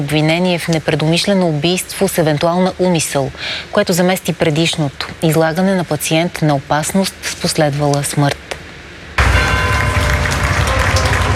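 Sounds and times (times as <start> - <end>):
speech: 0.0 - 8.4
crowd applauding at a funeral: 9.2 - 11.3.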